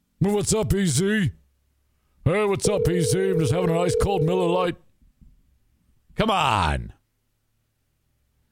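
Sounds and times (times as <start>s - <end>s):
speech: 0.2s - 1.4s, 2.2s - 4.8s, 6.2s - 7.0s
telephone line beep from a voicemail greeting: 2.6s - 4.4s.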